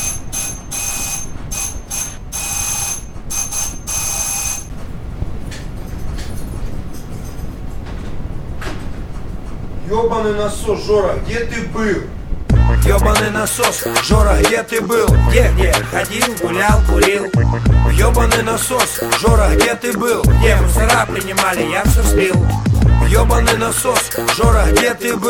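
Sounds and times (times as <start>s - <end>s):
doorbell ringing: 0.0s - 4.7s
speech: 9.9s - 12.2s, 12.8s - 25.2s.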